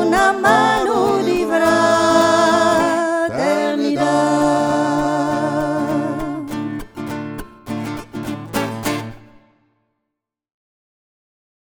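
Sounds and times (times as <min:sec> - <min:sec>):
three-voice singing: 0:00.0 - 0:07.1.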